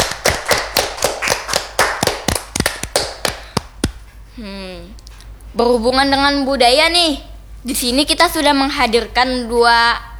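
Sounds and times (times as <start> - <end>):
hands clapping: 0.0 - 4.0
speech: 4.4 - 10.1.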